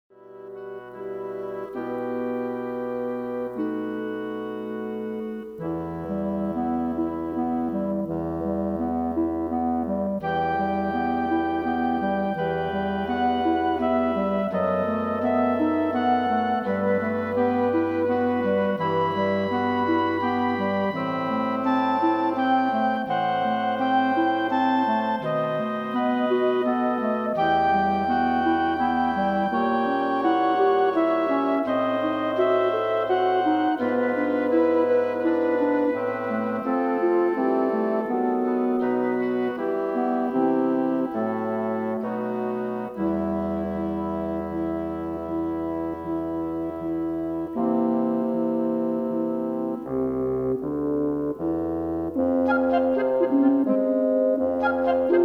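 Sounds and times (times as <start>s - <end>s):
piano concerto: 0.0s - 55.2s.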